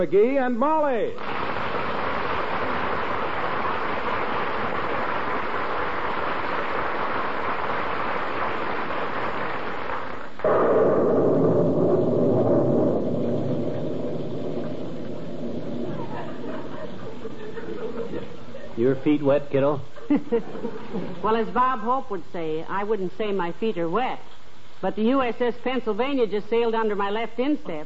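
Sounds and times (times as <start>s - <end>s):
speech: 0.0s - 1.5s, 10.4s - 10.8s, 18.8s - 27.8s
rain falling on a street: 1.2s - 10.7s, 11.4s - 18.8s
laughter: 15.8s - 19.0s, 19.9s - 21.3s.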